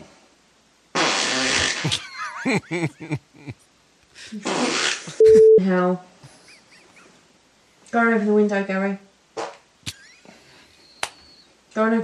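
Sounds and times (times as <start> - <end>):
fart recorded by a sleep app: 0.9 - 2.0, 4.4 - 5.2
laughter: 1.8 - 3.6, 5.1 - 5.6, 6.2 - 7.1, 9.9 - 11.2
speech: 1.9 - 6.1, 7.9 - 9.1, 11.8 - 12.0.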